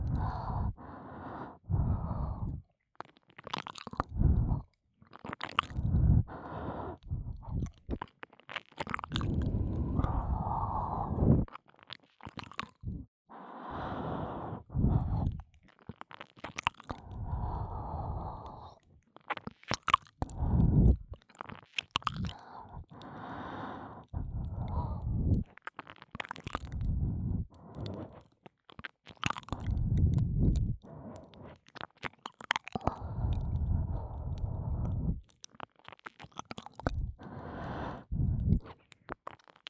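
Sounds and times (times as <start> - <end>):
breathing and ear licking in the right ear: 0.0 - 2.6, 4.1 - 4.7, 5.7 - 7.7, 9.2 - 11.5, 12.8 - 15.4, 17.0 - 18.8, 22.2 - 25.5, 26.7 - 28.2, 32.8 - 35.2, 36.9 - 38.7
ear licking in the right ear: 1.7 - 13.0, 14.6 - 39.6.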